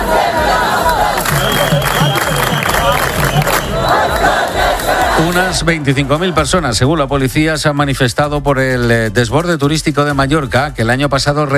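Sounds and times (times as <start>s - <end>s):
crowd chanting at mass street protest in Palma: 0.0s - 6.8s
speech: 5.3s - 11.5s.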